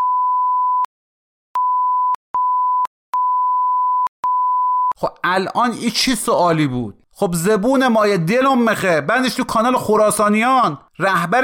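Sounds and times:
censor beeps: 0.0s - 0.9s, 1.6s - 5.0s
speech: 5.0s - 11.4s.

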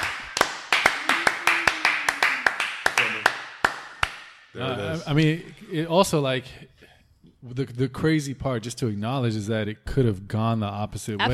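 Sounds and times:
round of applause: 0.0s - 4.3s
speech: 4.6s - 6.7s, 7.4s - 11.3s.

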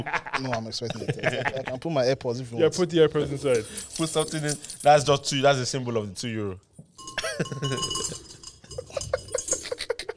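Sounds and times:
laughter: 0.0s - 1.9s, 8.7s - 10.1s
speech: 0.0s - 6.7s, 7.4s - 8.4s
keys clinking: 3.1s - 5.4s, 6.7s - 9.9s.

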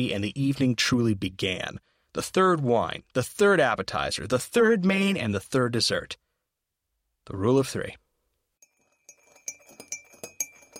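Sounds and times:
speech: 0.0s - 6.2s, 7.3s - 8.0s
spoon stirring black coffee in a cup: 8.6s - 10.7s.

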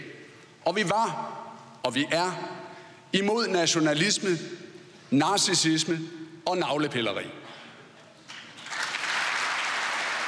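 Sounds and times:
speech: 0.7s - 7.4s
hesitant stumbling applause: 8.6s - 10.2s.

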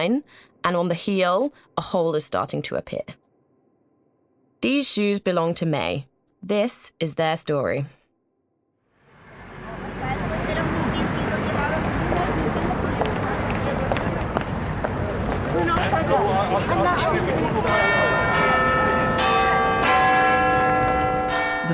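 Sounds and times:
speech: 0.0s - 3.2s, 4.6s - 8.0s, 15.6s - 18.0s
busy street noise: 9.0s - 21.7s
murmuring voices: 9.3s - 18.7s
Big Ben clock bell chiming: 17.2s - 21.7s.

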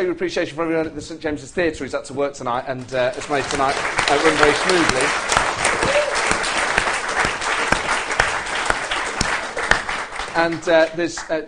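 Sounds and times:
speech: 0.0s - 5.3s, 10.4s - 11.4s
theatre audience applause: 3.0s - 11.3s.

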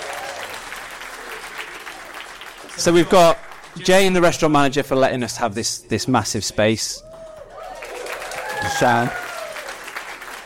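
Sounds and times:
crowd applauding: 0.0s - 4.5s, 7.0s - 10.4s
speech: 2.8s - 7.1s, 8.6s - 9.2s.

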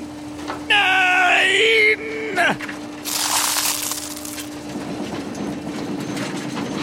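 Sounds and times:
constant low motor hum: 0.0s - 6.7s
speech: 2.4s - 2.8s
garbage truck trash compactor crushing: 3.0s - 4.8s.

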